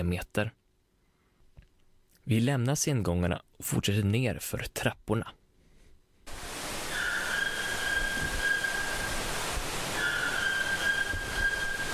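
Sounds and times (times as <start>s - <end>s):
speech: 0.0s - 0.6s, 2.3s - 5.4s
constant loud rushing hiss: 6.3s - 11.9s
white-throated toucan calling: 6.8s - 9.3s, 9.9s - 11.9s.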